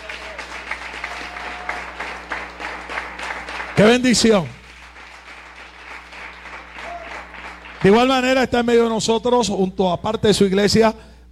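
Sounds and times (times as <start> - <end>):
audience applause: 0.0 - 8.3
speech: 3.8 - 4.6, 7.8 - 11.1.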